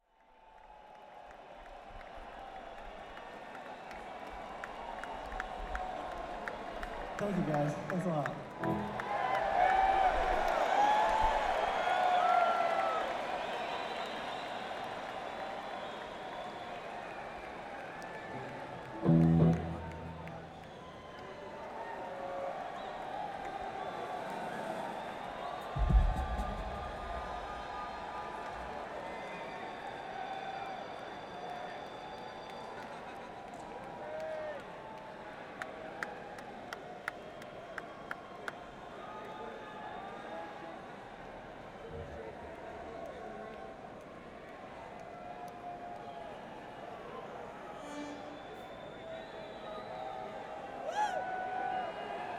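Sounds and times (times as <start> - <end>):
crowd in a coliseum: 0.0 - 52.3.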